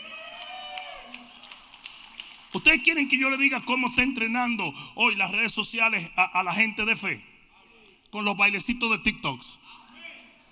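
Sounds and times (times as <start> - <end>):
faint scattered hand claps: 0.4 - 2.6
speech: 2.5 - 7.3, 8.1 - 9.8.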